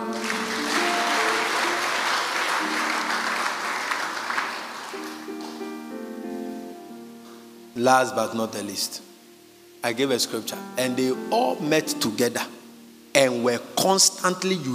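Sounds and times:
audience clapping: 0.0s - 5.8s
speech: 7.8s - 9.1s, 9.8s - 12.6s, 13.2s - 14.7s.

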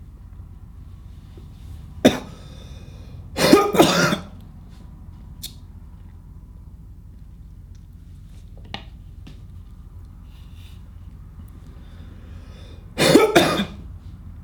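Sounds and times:
person coughing: 2.0s - 2.7s, 3.4s - 4.3s, 13.0s - 13.8s.

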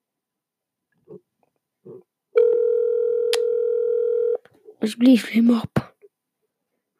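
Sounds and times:
phone ringback tone beep: 2.4s - 4.4s
speech: 4.8s - 5.8s.

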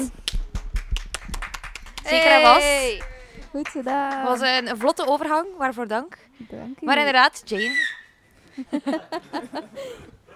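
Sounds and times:
speech: 0.0s - 0.2s, 2.1s - 8.0s, 8.6s - 10.2s
small round of applause: 0.1s - 5.1s
laughter: 8.5s - 10.1s.

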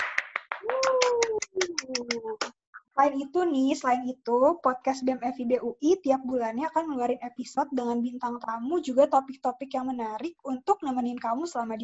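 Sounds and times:
crowd hand clapping: 0.0s - 2.2s
speech: 3.0s - 11.8s.

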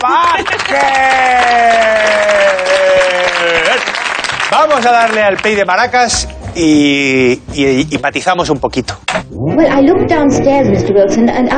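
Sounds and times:
audience applause: 0.0s - 6.0s
speech: 4.7s - 11.5s.

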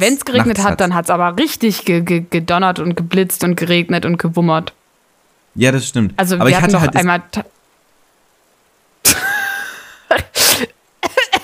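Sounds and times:
speech: 0.0s - 4.8s, 5.6s - 7.6s, 9.0s - 9.3s
coughing after choking on something swallowed: 9.0s - 11.4s.

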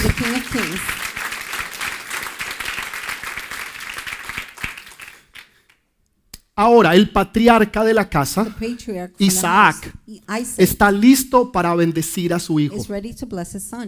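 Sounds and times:
speech: 0.0s - 1.0s, 6.6s - 13.8s
applause: 0.0s - 5.8s.

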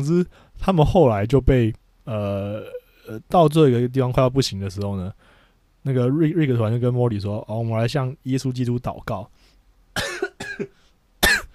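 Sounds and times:
speech: 0.0s - 9.4s, 10.6s - 10.8s
person coughing: 10.0s - 11.5s.

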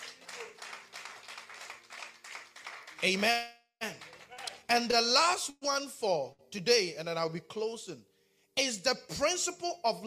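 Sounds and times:
audience clapping: 0.0s - 4.7s
speech: 3.0s - 4.1s, 4.7s - 10.0s.

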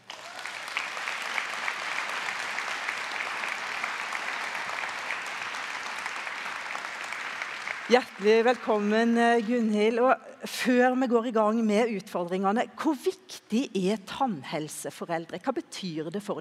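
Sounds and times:
audience applause: 0.0s - 8.9s
speech: 7.9s - 16.3s.

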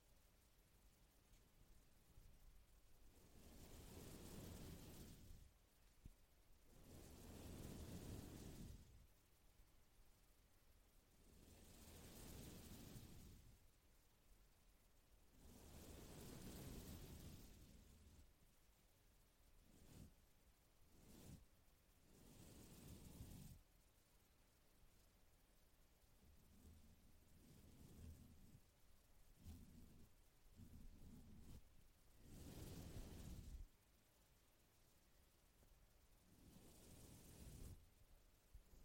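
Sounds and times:
brush sweeping across a microphone: 3.0s - 9.2s, 11.2s - 13.6s, 15.3s - 18.3s, 19.5s - 23.8s, 26.4s - 33.8s, 36.2s - 38.8s.

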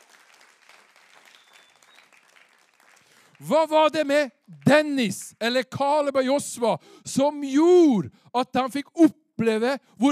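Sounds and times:
audience applause: 0.0s - 3.7s
speech: 3.4s - 10.1s.

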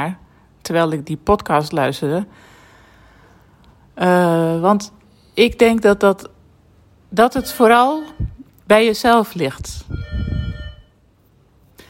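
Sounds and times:
speech: 0.0s - 2.5s, 4.0s - 6.3s, 7.1s - 10.1s
electronic doorbell chime: 7.4s - 8.3s, 10.0s - 10.9s.

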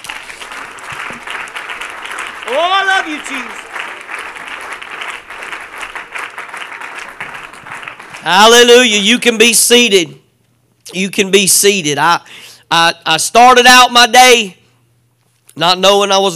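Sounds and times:
audience clapping hands: 0.0s - 8.7s
speech: 2.5s - 3.6s, 8.2s - 10.2s, 10.9s - 14.6s, 15.6s - 16.3s.

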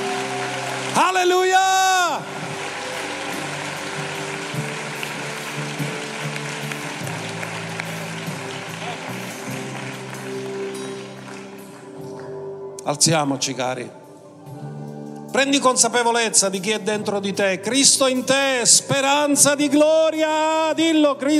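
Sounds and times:
audience applause: 0.0s - 12.2s
speech: 1.0s - 1.6s, 12.9s - 14.0s, 15.4s - 21.3s.

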